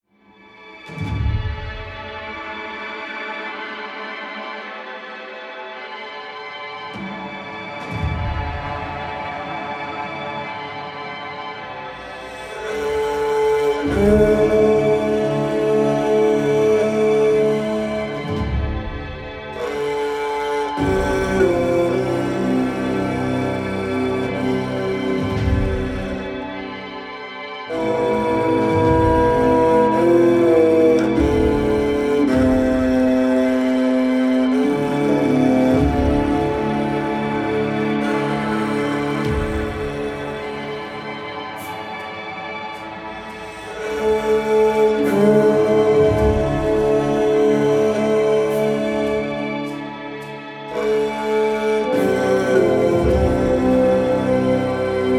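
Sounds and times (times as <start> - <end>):
Highlands ambient music: 0.0 - 55.1.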